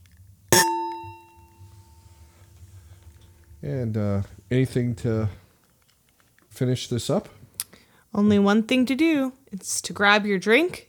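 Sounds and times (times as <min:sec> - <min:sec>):
glasses clinking in a toast: 0:00.5 - 0:02.4
speech: 0:03.6 - 0:05.4, 0:06.6 - 0:07.4, 0:08.1 - 0:10.8.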